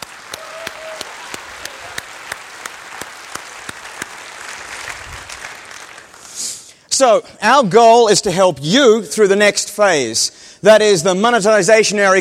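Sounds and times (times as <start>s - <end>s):
applause: 0.0s - 6.7s
speech: 7.0s - 12.1s.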